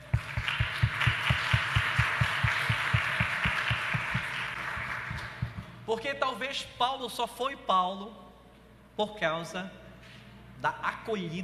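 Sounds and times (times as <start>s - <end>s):
applause: 0.0s - 5.7s
speech: 5.9s - 8.2s, 9.0s - 9.8s, 10.6s - 11.4s.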